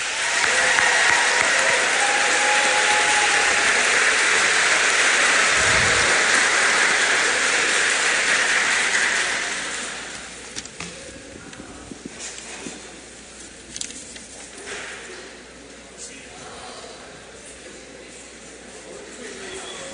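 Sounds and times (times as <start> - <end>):
crowd applause: 0.0 - 10.4.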